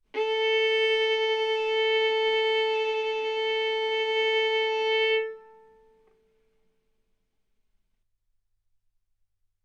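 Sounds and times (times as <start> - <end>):
violin bowed arco notes: 0.1 - 6.2.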